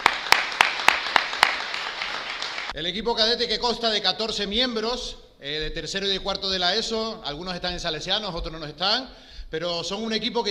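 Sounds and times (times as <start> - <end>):
audience hand claps for a cadet sports team: 0.0 - 2.8
speech: 2.8 - 10.4.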